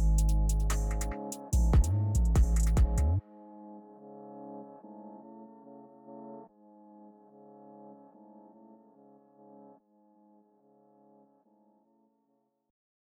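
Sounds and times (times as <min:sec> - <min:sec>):
Italian drill music: 0:00.0 - 0:03.2.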